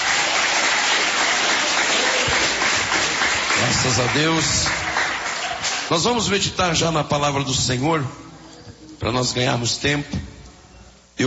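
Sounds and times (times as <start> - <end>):
audience clapping: 0.0 - 6.2
speech: 3.7 - 5.0, 5.9 - 8.2, 9.0 - 10.3.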